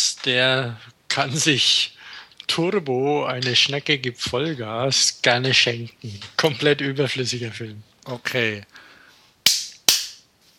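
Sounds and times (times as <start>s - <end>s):
speech: 0.2s - 8.9s
sharp hand claps to mark the recording: 9.5s - 10.2s.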